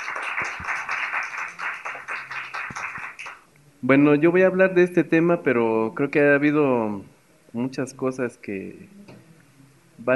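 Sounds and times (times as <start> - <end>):
audience applause: 0.0 - 3.4
speech: 3.8 - 9.1.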